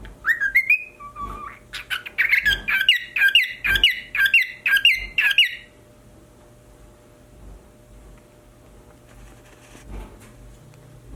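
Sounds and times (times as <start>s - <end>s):
pied cockatiel whistling and chattering: 0.2s - 5.7s.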